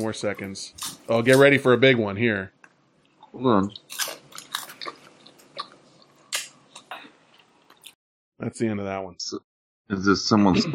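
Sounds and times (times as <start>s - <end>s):
person eating popcorn: 0.0s - 1.6s, 3.0s - 8.0s
speech: 0.0s - 2.6s, 3.3s - 4.0s, 8.4s - 10.7s.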